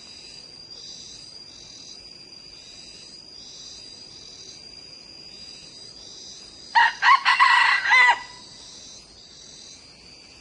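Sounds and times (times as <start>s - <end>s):
steady high insect hum: 0.0s - 10.3s
Red junglefowl crowing: 6.8s - 8.5s.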